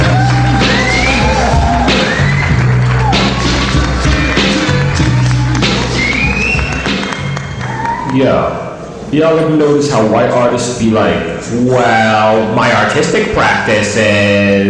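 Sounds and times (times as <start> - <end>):
audience applause: 0.1 - 8.3
speech: 9.1 - 14.6.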